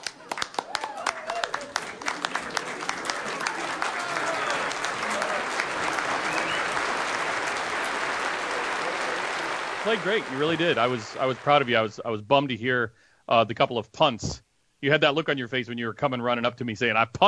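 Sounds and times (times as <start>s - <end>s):
round of applause: 0.0s - 12.0s
speech: 9.9s - 17.2s.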